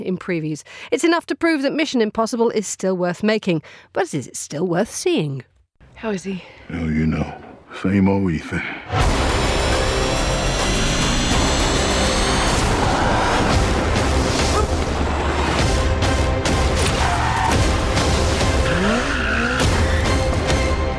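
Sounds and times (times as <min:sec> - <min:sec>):
speech: 0:00.0 - 0:09.1
loud music: 0:08.9 - 0:20.9
tyre screeching: 0:11.4 - 0:15.6, 0:16.7 - 0:17.8, 0:18.4 - 0:20.1.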